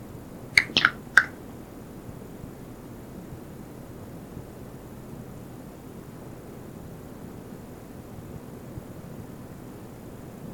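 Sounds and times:
finger snapping: 0.6s - 1.3s.

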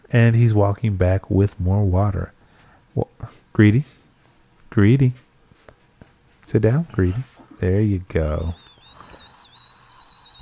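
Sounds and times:
speech: 0.1s - 2.4s, 3.0s - 4.0s, 4.7s - 5.2s, 6.5s - 8.7s
cup whistling into the microphone: 8.4s - 10.4s.

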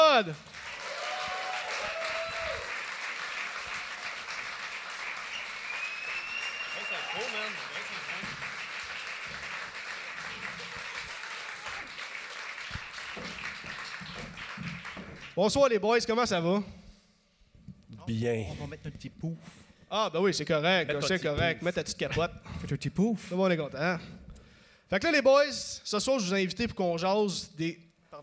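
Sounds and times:
audience applause: 0.0s - 15.4s
speech: 0.2s - 0.5s, 7.2s - 8.4s, 15.4s - 16.8s, 18.1s - 24.2s, 24.9s - 28.2s
laughter: 6.7s - 8.7s.

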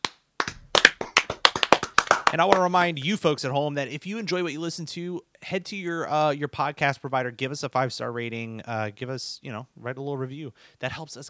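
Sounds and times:
clapping: 0.0s - 2.7s
speech: 2.3s - 11.2s.

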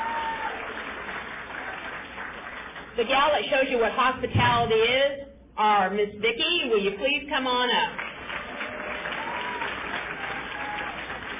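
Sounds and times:
audience applause: 0.0s - 3.0s, 8.0s - 11.3s
speech: 3.0s - 8.0s.

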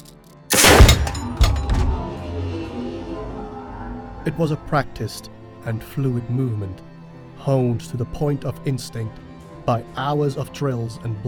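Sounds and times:
shotgun blast in a confined space: 0.5s - 3.0s
speech: 4.2s - 11.2s.

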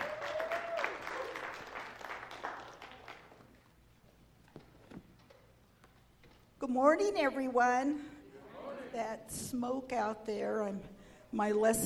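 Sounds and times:
church congregation applauding during a morning service: 0.0s - 3.6s
speech: 6.7s - 8.2s, 8.9s - 11.8s.

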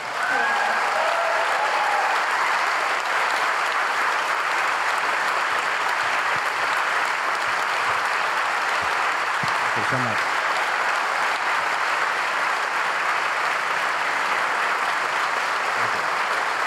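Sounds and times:
large audience applause: 0.0s - 16.6s
whistles and cheers: 0.1s - 3.4s.

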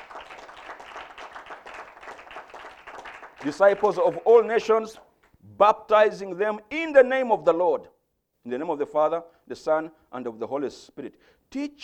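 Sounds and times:
audience clapping: 0.0s - 5.4s
speech: 3.4s - 11.8s.

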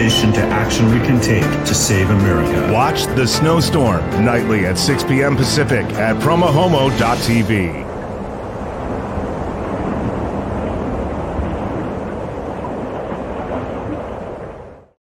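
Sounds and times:
speech: 0.1s - 7.9s
rainstorm in show opening: 6.5s - 15.0s.

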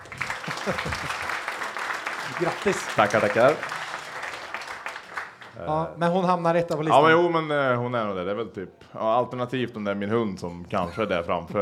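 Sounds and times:
applause: 0.0s - 5.7s
laughter: 0.1s - 1.5s
speech: 0.6s - 1.4s, 2.3s - 3.8s, 5.6s - 11.6s.

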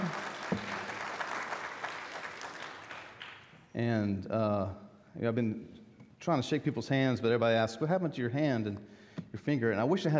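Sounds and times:
audience applause for worship band: 0.0s - 3.5s
speech: 3.8s - 10.1s.

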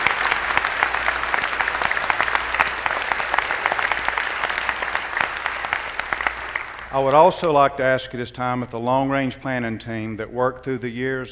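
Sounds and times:
audience applause: 0.0s - 7.6s
speech: 7.0s - 11.3s.

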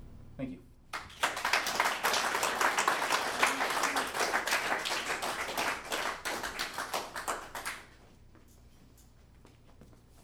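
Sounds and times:
speech: 0.4s - 0.7s
audience applause: 1.0s - 7.9s.

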